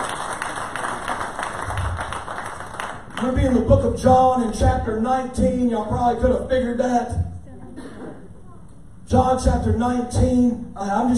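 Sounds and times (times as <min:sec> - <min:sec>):
Sunday-morning church congregation clapping in praise: 0:00.0 - 0:03.8
speech: 0:03.2 - 0:07.2, 0:09.1 - 0:11.1.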